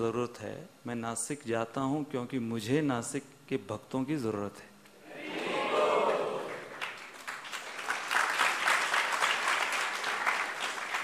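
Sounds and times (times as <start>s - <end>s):
speech: 0.0s - 4.7s
audience applause: 5.3s - 11.0s.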